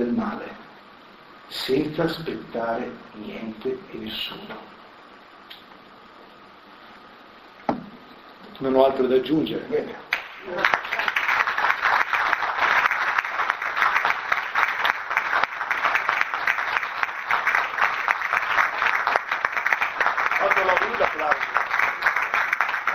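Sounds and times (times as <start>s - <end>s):
speech: 1.5s - 4.7s, 8.6s - 10.9s
audience applause: 10.1s - 22.9s.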